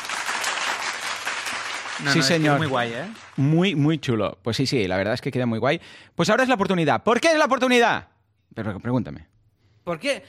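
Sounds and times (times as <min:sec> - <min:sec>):
applause: 0:00.0 - 0:03.6
speech: 0:02.0 - 0:10.2.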